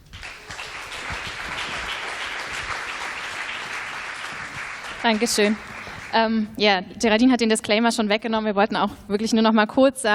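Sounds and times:
audience applause: 0.0s - 6.2s
speech: 5.0s - 10.1s.

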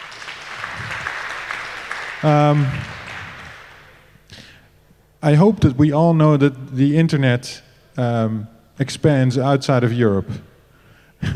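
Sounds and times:
audience applause: 0.0s - 4.0s
speech: 2.2s - 3.0s, 5.2s - 10.5s, 11.2s - 11.3s.

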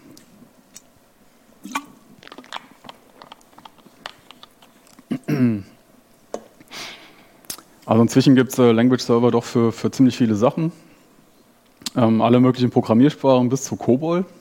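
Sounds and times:
gulping a drink: 1.6s - 2.6s
slurping and mouth clicks while sipping a drink: 1.6s - 5.1s, 7.4s - 7.7s, 11.8s - 12.0s
speech: 7.9s - 10.9s, 12.0s - 14.3s.

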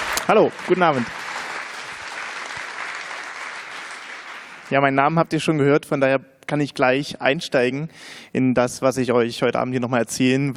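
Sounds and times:
audience applause: 0.0s - 4.7s
speech: 0.3s - 1.2s, 4.7s - 10.5s.

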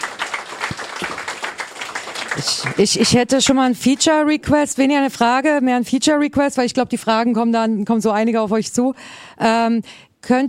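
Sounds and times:
audience applause after a presentation at a youth hackathon: 0.0s - 3.2s
speech: 2.4s - 10.4s.

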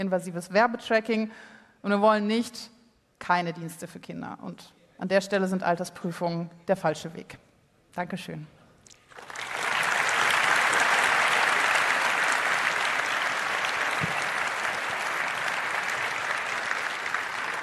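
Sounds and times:
speech: 0.0s - 8.6s
audience applause after a talk: 9.1s - 17.6s.

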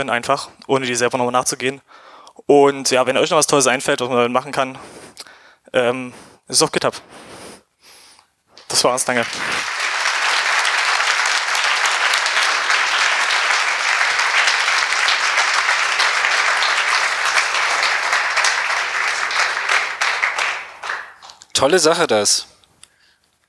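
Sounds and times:
speech: 0.0s - 7.3s, 8.7s - 9.6s, 21.6s - 22.5s
audience applause after a talk: 8.7s - 21.5s.

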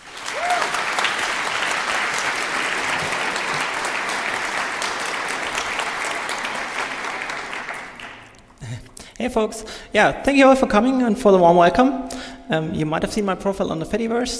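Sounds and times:
audience applause: 0.0s - 8.6s
speech: 9.2s - 14.3s.

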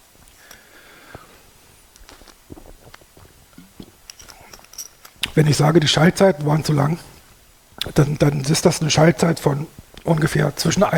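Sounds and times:
low steady hiss: 0.0s - 10.9s
speaker sipping a drink, mouth and swallowing noises: 2.0s - 5.4s
speech: 5.4s - 7.1s, 7.9s - 10.9s.

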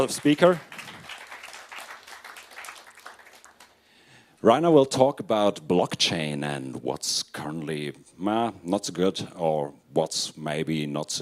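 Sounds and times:
speech: 0.0s - 0.7s, 4.4s - 11.2s
audience applause for the speaker: 0.0s - 3.8s.

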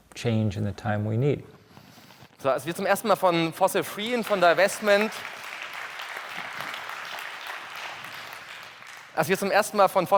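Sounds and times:
speech: 0.2s - 1.6s, 2.4s - 5.4s, 9.2s - 10.1s
audience clapping in a hall: 2.7s - 10.1s.

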